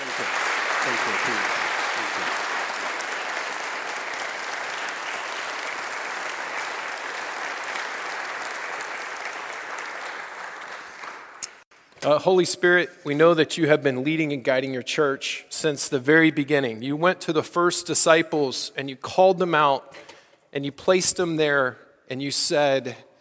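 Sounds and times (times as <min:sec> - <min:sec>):
audience applause: 0:00.0 - 0:11.6
speech: 0:00.2 - 0:01.6, 0:12.0 - 0:23.1.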